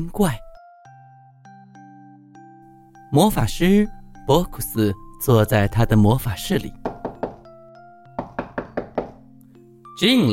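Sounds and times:
speech: 0.0s - 0.4s, 3.1s - 6.8s, 10.0s - 10.3s
knocking on a door: 6.8s - 7.5s, 8.1s - 9.3s.

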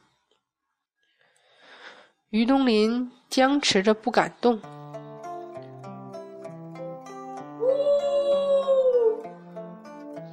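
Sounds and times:
speech: 2.3s - 4.8s
long mournful creature howl: 7.6s - 9.3s.

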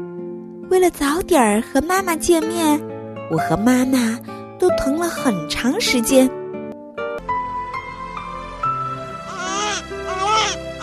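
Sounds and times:
speech: 0.7s - 6.4s
newborn baby crying: 9.2s - 10.8s.

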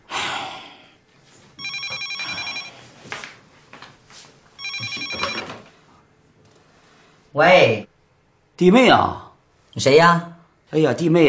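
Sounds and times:
telephone ringing: 1.6s - 2.8s, 4.6s - 5.7s
speech: 7.4s - 7.9s, 8.6s - 9.2s, 9.8s - 11.2s.

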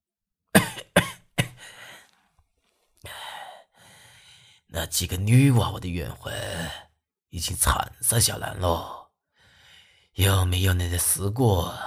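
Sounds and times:
grandfather coughing: 0.5s - 1.6s
speech: 4.7s - 9.0s, 10.2s - 11.8s.

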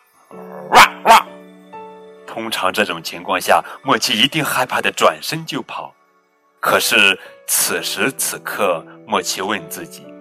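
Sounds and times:
large chained dog barking: 0.6s - 1.3s
speech: 2.4s - 6.0s, 6.6s - 10.1s.

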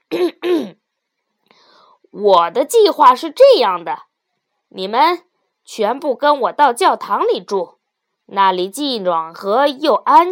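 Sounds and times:
person clearing throat: 0.1s - 0.8s
speech: 2.1s - 4.1s, 4.7s - 10.2s.

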